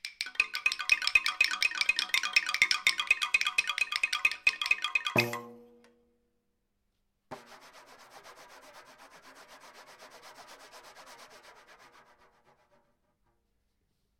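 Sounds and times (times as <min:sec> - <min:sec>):
railway music: 0:00.2 - 0:05.4.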